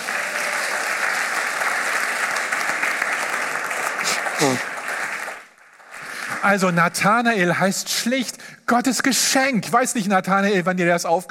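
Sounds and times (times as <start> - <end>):
audience applause: 0.0 - 6.4
speech: 4.4 - 4.7, 6.4 - 11.2.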